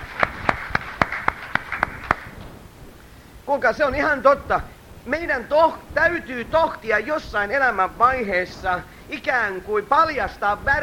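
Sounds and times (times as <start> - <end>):
people clapping for a pastor during a church service: 0.0 - 2.4
speech: 3.5 - 10.8.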